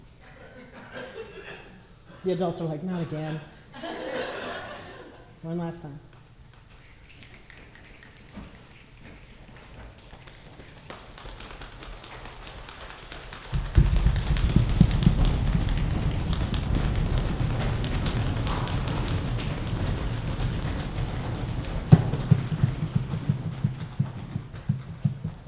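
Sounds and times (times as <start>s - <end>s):
laughter: 0.2s - 2.2s, 2.9s - 5.4s
speech: 2.2s - 3.6s, 5.4s - 6.1s
crowd patting and rubbing hands making a thunderstorm: 6.1s - 25.4s.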